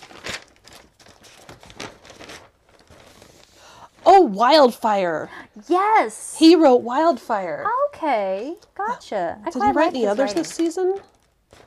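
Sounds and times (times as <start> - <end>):
pages of notes being flipped: 0.0 - 4.3, 9.6 - 11.6
speech: 4.3 - 11.1.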